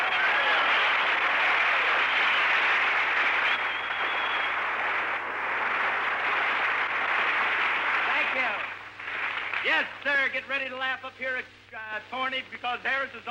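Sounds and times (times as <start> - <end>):
large audience applause: 0.0 - 10.0
speech: 9.8 - 13.2.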